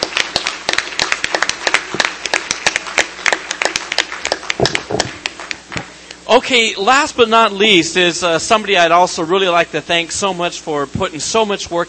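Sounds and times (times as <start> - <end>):
audience applause: 0.0 - 5.8
speech: 6.3 - 11.8.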